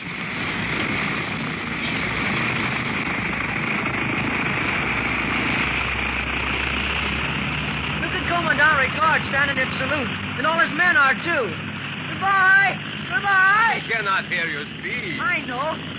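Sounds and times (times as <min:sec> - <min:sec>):
aircraft engine droning during takeoff: 0:00.0 - 0:15.9
speech: 0:09.2 - 0:11.6, 0:12.2 - 0:15.9.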